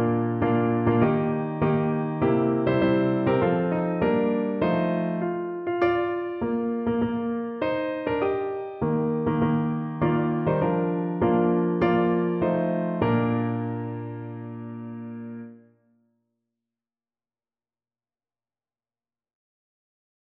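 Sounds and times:
piano piece: 0.0 - 15.8.

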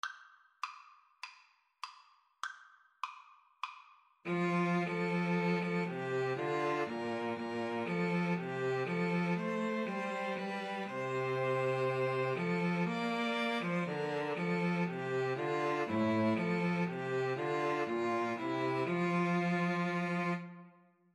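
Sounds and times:
string trio playing: 4.3 - 20.6.

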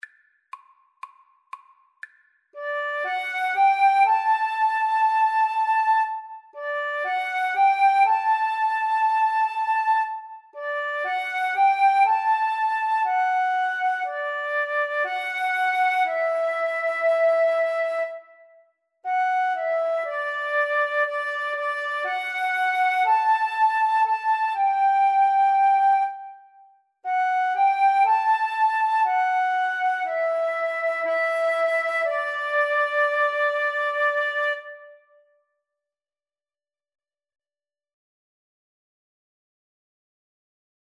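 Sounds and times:
flute melody: 2.6 - 35.2.

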